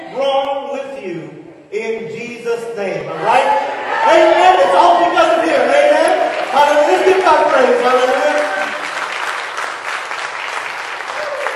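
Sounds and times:
speech: 1.0 - 5.8
audience clapping: 4.8 - 11.5.

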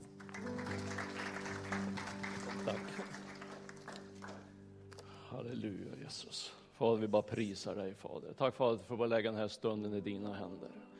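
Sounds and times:
audience applause: 0.0 - 4.6
speech: 2.7 - 3.1, 5.4 - 10.9.

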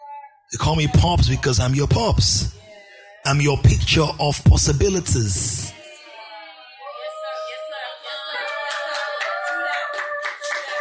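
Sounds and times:
speech: 0.5 - 2.6, 3.2 - 5.7
audience clapping: 8.4 - 10.7.

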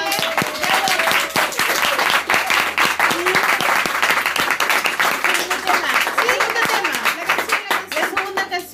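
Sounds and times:
crowd applauding: 0.0 - 8.6.

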